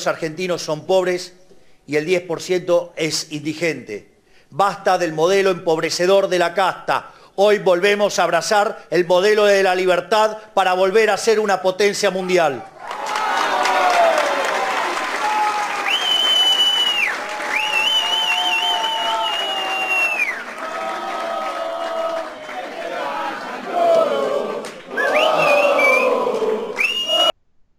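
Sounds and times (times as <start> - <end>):
speech: 0.0 - 12.7
rally crowd cheering and applauding: 12.7 - 27.3
shrill whistles: 15.4 - 20.5, 24.9 - 27.4.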